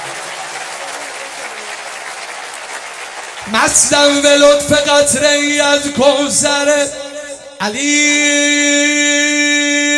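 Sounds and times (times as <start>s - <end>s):
crowd applauding at a religious gathering in honour of a servant of Imam Ali: 0.0s - 5.4s
speech: 3.4s - 7.0s, 7.6s - 9.8s.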